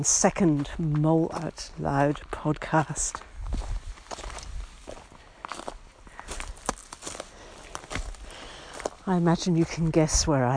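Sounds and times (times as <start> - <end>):
speech: 0.0 - 3.7, 9.1 - 10.5
footsteps crunching through fallen leaves: 0.4 - 10.5
heavy breathing: 5.1 - 9.0.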